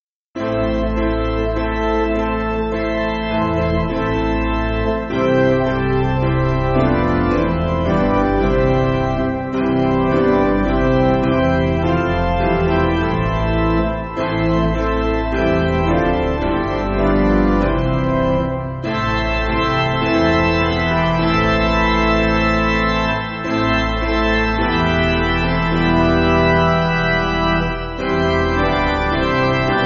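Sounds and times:
piano backing music: 0.4s - 29.8s.

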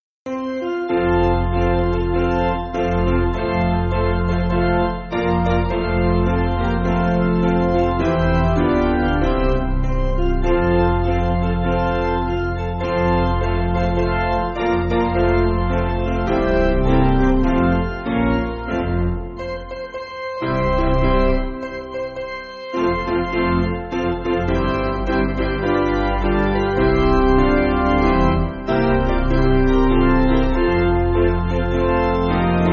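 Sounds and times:
piano backing music for churches: 0.3s - 32.7s.

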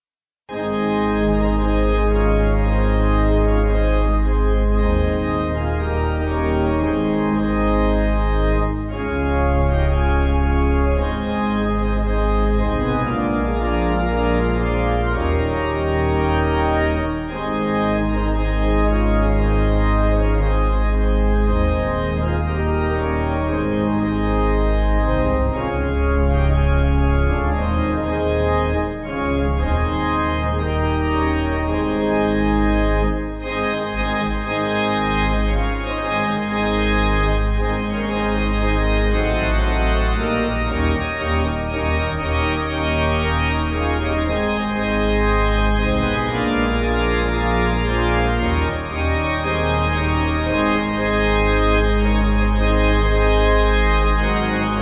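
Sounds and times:
church pipe organ backing music: 0.5s - 54.7s.

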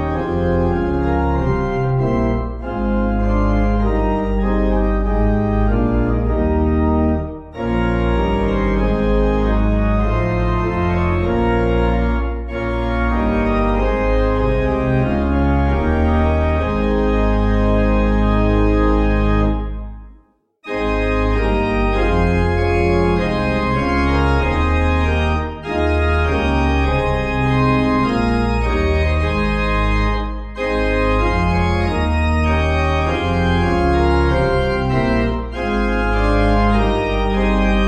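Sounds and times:
pipe organ playing at Feniton Court: 0.0s - 37.8s.

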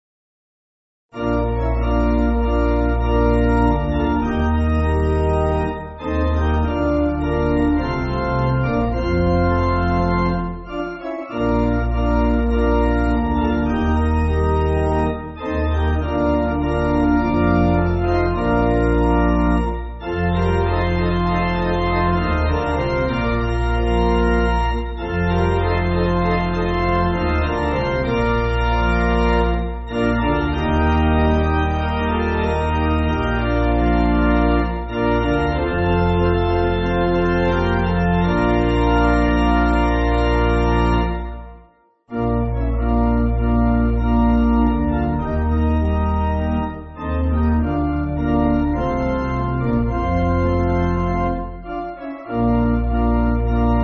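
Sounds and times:
pipe organ backing music for churches: 1.1s - 53.8s.

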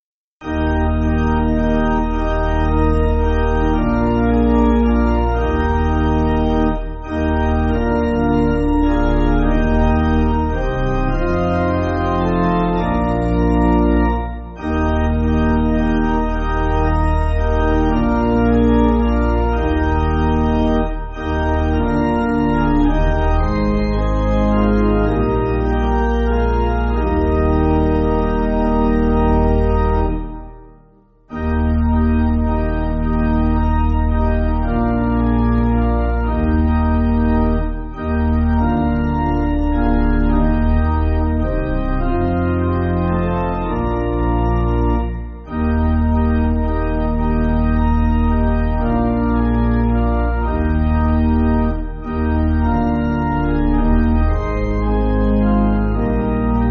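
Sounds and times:
pipe organ backing music for churches: 0.4s - 56.6s.

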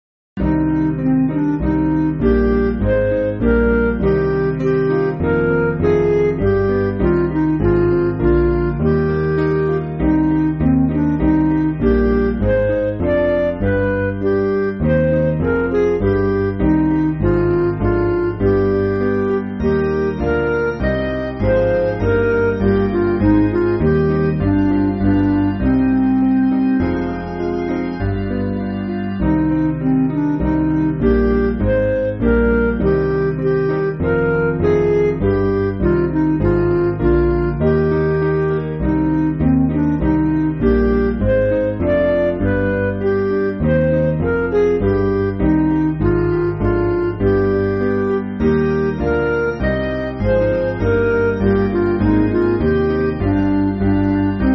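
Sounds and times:
MIDI church backing music: 0.4s - 54.5s.

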